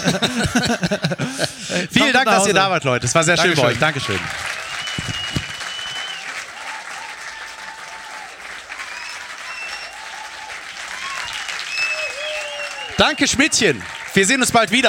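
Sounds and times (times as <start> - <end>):
laughter: 0.0 - 2.6, 3.4 - 5.6
speech: 0.0 - 5.2, 13.0 - 14.8
audience applause: 3.4 - 14.8.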